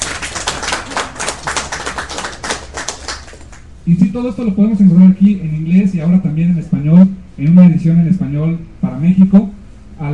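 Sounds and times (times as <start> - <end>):
audience applause: 0.0 - 3.6
speech: 3.9 - 10.1.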